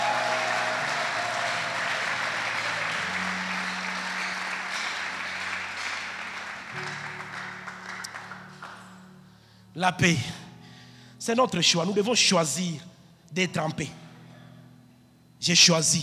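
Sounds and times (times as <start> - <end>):
church congregation applauding: 0.0 - 9.1
speech: 9.8 - 10.4, 11.2 - 14.0, 15.4 - 16.0.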